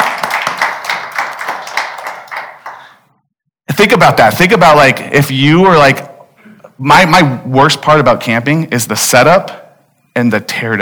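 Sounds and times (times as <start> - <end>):
crowd clapping: 0.0 - 3.1
speech: 3.8 - 6.1, 6.8 - 9.6, 10.2 - 10.8.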